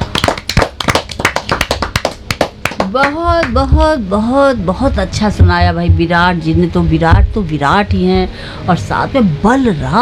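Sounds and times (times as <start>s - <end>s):
audience clapping: 0.0s - 3.7s
speech: 2.9s - 10.0s.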